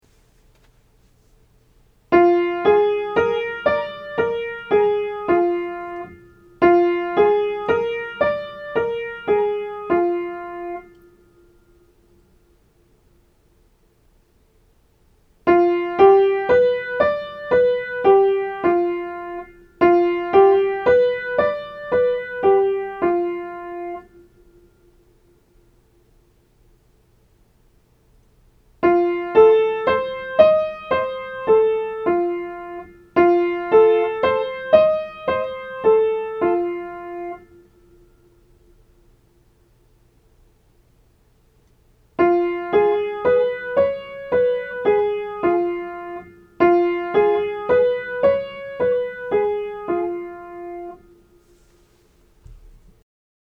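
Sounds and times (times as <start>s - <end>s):
major and minor seventh chords for aural training: 2.2s - 11.9s, 15.5s - 25.1s, 28.8s - 38.4s, 42.2s - 51.6s.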